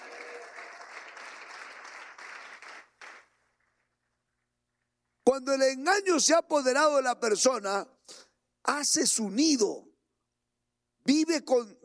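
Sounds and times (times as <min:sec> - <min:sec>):
audience applause: 0:00.0 - 0:03.4
speech: 0:05.4 - 0:09.9, 0:11.1 - 0:11.8.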